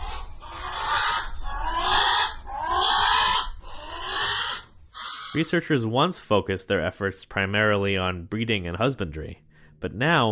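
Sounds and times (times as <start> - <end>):
Hawaiian crow (alala) calls: 0.0 - 5.5
speech: 5.4 - 10.3.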